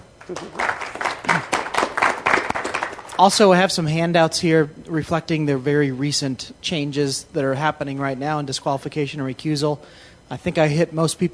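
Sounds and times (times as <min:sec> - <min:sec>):
audience applause welcoming a speaker at a talk on judicial records: 0:00.2 - 0:03.2
speech: 0:00.3 - 0:00.9, 0:03.2 - 0:11.3.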